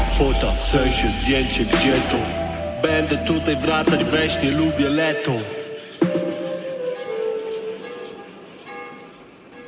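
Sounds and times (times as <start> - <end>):
speech: 0.2 - 5.6
bells ringing out at end of song: 5.3 - 9.6.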